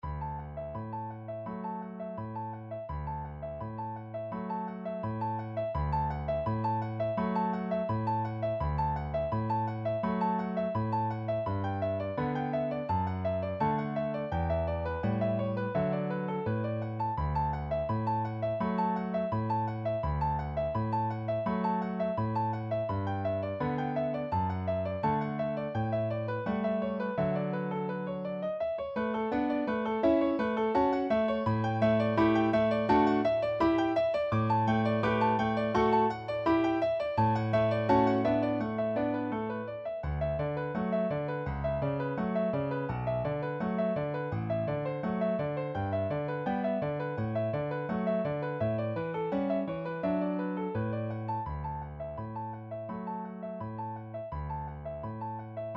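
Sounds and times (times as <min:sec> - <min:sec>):
piano: 0:00.0 - 0:55.7.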